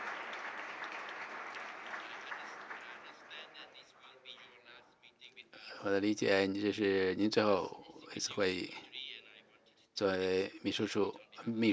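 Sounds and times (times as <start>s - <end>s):
audience applause: 0.0s - 3.7s
speech: 5.8s - 8.9s, 10.0s - 11.7s.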